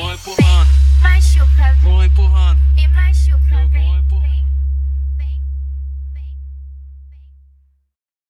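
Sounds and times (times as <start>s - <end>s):
car audio music: 0.0s - 6.3s.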